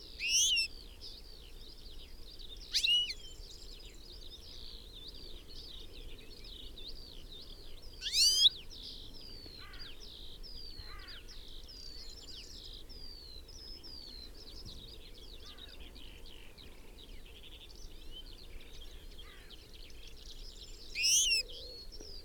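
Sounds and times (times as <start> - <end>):
European goldfinch Carduelis carduelis calls: 0.2 - 0.7, 2.7 - 3.2, 8.0 - 8.5, 21.0 - 21.4.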